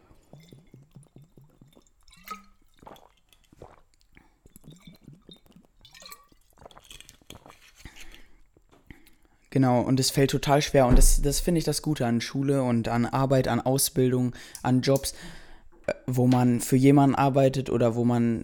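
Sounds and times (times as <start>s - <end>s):
person drinking to ease a dry mouth, gulping and swallowing: 0.0s - 9.2s
speech: 9.6s - 15.4s, 16.1s - 18.4s.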